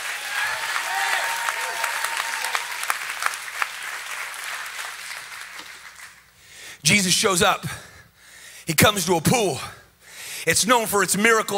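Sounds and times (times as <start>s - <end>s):
shouts and whoops: 0.0s - 3.0s
crowd clapping: 0.0s - 6.3s
speech: 6.8s - 7.9s, 8.7s - 9.8s, 10.4s - 11.5s.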